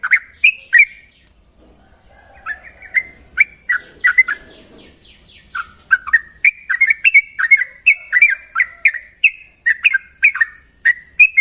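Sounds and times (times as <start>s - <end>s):
yellow-vented bulbul singing a long rapid trill song: 2.4s - 11.3s.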